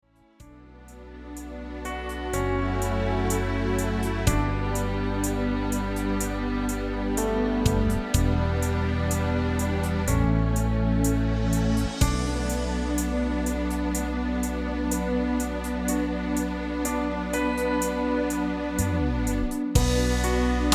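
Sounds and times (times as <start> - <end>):
instrumental music: 0.4 - 20.7.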